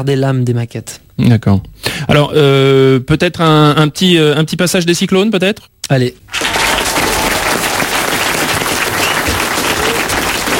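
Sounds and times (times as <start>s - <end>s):
speech: 0.0s - 6.6s
audience applause: 6.3s - 10.5s.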